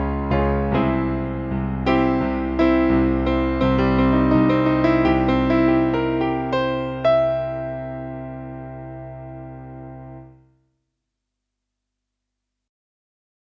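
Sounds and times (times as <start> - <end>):
E flat chords: 0.0 - 10.4.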